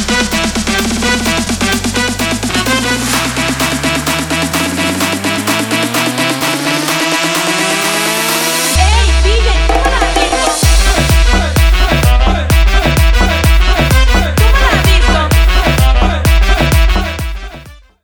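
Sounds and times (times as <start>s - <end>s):
aleteo dance music: 0.0s - 18.0s.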